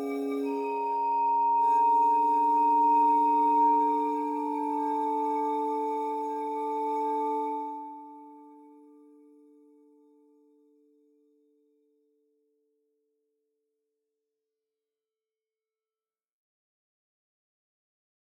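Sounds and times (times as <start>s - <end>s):
bowed gamelan ugal: 0.0s - 8.9s.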